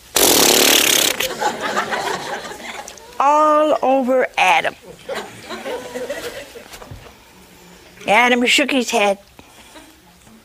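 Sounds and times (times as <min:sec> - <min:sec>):
voice imitating an elephant spraying water from its trunk: 0:00.0 - 0:01.3
laughter: 0:01.1 - 0:03.2, 0:04.8 - 0:06.9
speech: 0:03.2 - 0:06.7, 0:08.0 - 0:09.3.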